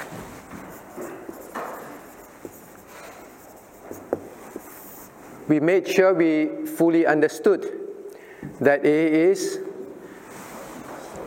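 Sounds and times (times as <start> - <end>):
pen or marker scratching on a board during a Bible lesson: 0.0 - 5.2
steady noise: 0.0 - 11.2
speech: 5.5 - 7.8, 8.6 - 9.6.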